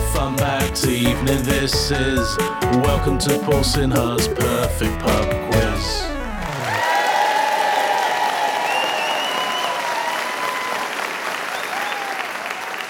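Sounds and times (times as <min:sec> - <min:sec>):
speech: 0:00.2 - 0:06.2
audience applause: 0:06.4 - 0:12.8.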